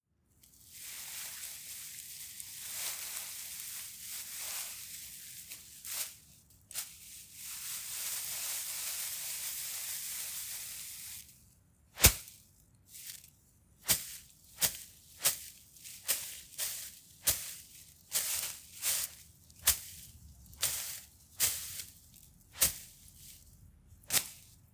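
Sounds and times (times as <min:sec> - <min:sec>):
plants or ferns manipulation hit: 0:00.7 - 0:09.6, 0:12.0 - 0:12.4, 0:13.8 - 0:23.5, 0:24.1 - 0:24.6.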